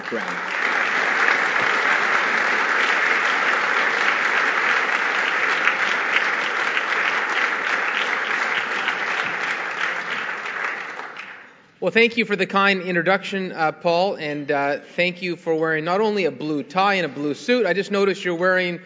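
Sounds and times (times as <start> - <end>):
audience applause welcoming Ontario PC leader Patrick Brown: 0.0 - 11.6
speech: 0.1 - 0.7, 11.8 - 18.8.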